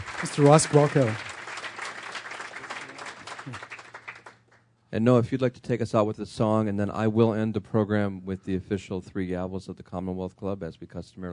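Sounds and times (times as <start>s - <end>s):
audience applause: 0.0s - 4.4s
speech: 0.2s - 1.3s, 4.9s - 11.3s.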